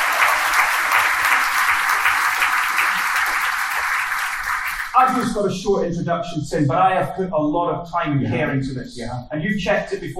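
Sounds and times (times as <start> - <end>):
audience applause: 0.0 - 5.4
speech: 5.0 - 10.1.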